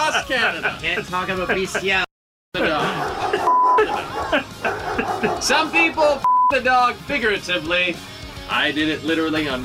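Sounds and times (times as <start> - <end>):
laughter: 0.0 - 6.0
speech: 0.2 - 4.5, 5.2 - 9.6
censor beep: 3.5 - 3.7, 6.2 - 6.6.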